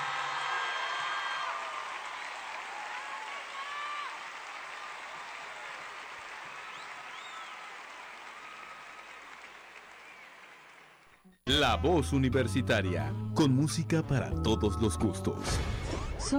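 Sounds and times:
audience applause: 0.0s - 11.2s
speech: 11.4s - 16.3s.

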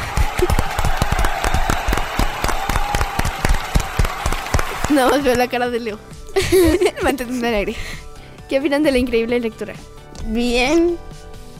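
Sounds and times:
laughter: 0.0s - 0.8s, 6.4s - 7.6s
applause: 0.0s - 5.4s
speech: 5.0s - 11.1s.

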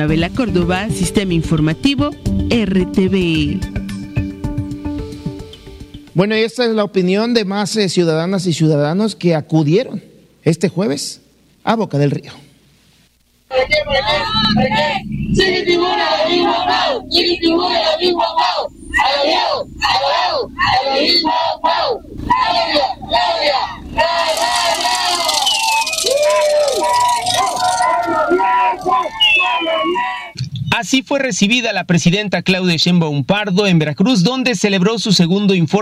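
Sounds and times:
speech: 0.0s - 3.8s, 6.2s - 12.4s, 13.5s - 21.3s, 30.8s - 35.7s
crowd cheering and chanting at rally: 13.5s - 30.4s.

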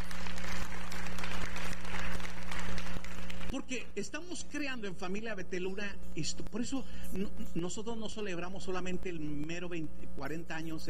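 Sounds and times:
crowd applauding: 0.0s - 3.6s
low steady hum: 0.0s - 10.8s
speech: 3.7s - 10.8s.

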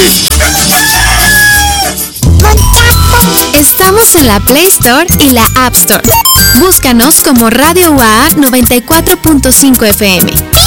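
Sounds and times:
bright music: 0.0s - 10.6s
rooster crowing: 0.3s - 3.2s
speech: 4.1s - 10.6s.

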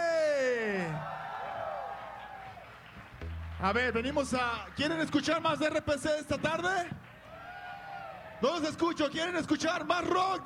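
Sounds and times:
audience whooping: 0.8s - 5.2s, 7.3s - 8.4s
crowd clapping and cheering: 1.0s - 8.4s
speech: 3.6s - 7.0s, 8.4s - 10.4s.

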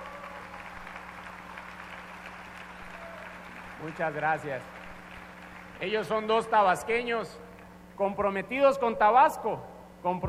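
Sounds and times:
audience applause: 0.0s - 6.2s
low electrical hum: 0.0s - 10.2s
speech: 3.8s - 4.8s, 5.8s - 10.2s.

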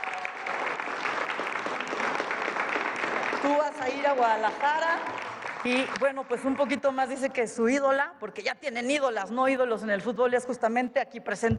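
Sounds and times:
audience applause: 0.0s - 6.4s
speech: 3.4s - 11.5s.

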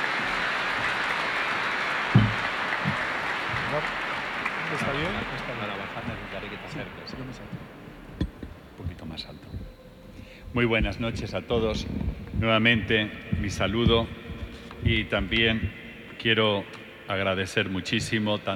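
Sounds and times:
audience applause welcoming a speaker: 0.0s - 7.5s
speech: 4.9s - 7.8s, 9.2s - 9.5s, 10.5s - 14.2s, 14.8s - 18.5s.

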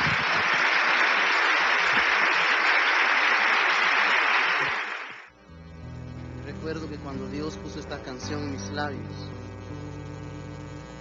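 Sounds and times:
audience applause: 0.0s - 5.3s
speech: 8.1s - 9.4s.

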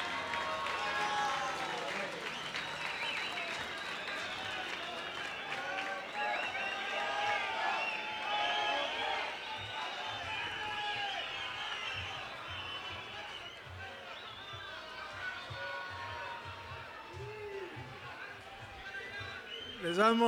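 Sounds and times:
audience applause: 0.0s - 20.2s.

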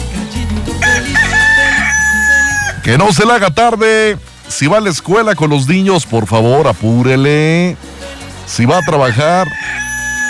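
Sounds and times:
rooster crowing: 0.8s - 2.8s, 8.7s - 10.2s
speech: 2.9s - 7.9s, 8.5s - 9.8s.

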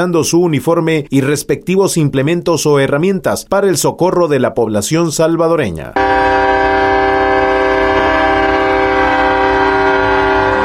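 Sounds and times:
speech: 0.0s - 6.2s
fire truck siren during an independence parade: 6.0s - 10.6s.

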